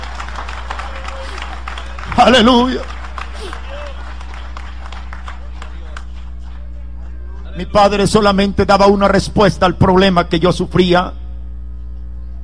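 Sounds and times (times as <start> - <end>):
audience applauding in praise: 0.0 - 7.5
speech: 2.2 - 2.9, 7.6 - 11.2.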